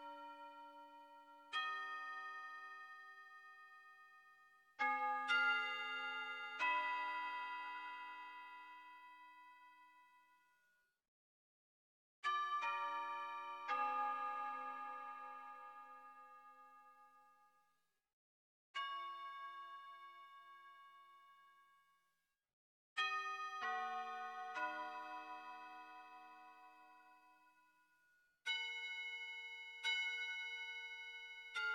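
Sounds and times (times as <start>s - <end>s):
wind chimes: 0.0s - 10.5s, 12.2s - 17.3s, 23.0s - 27.9s, 28.5s - 31.7s.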